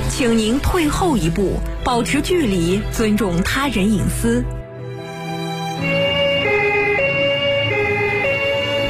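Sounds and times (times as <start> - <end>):
speech: 0.1 - 4.6
emergency vehicle siren on duty: 5.8 - 8.8.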